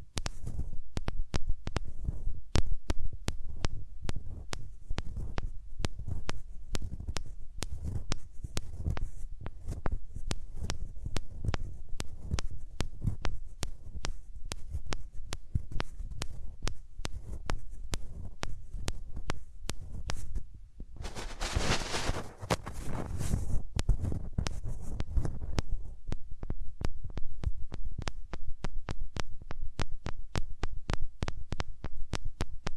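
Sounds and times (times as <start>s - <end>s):
skin crackles and clicks: 0.1s - 20.4s, 21.0s - 32.7s
hands rubbing over the ears: 21.0s - 25.2s.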